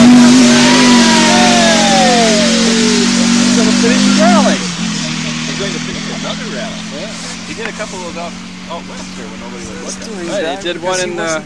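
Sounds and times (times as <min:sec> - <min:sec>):
rally car engine revving: 0:00.0 - 0:11.4
speech: 0:07.8 - 0:11.4.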